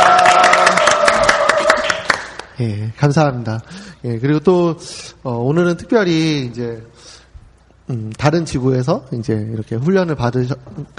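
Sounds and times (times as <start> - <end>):
audience applause: 0.0 - 2.5
speech: 2.6 - 7.2, 7.9 - 10.9.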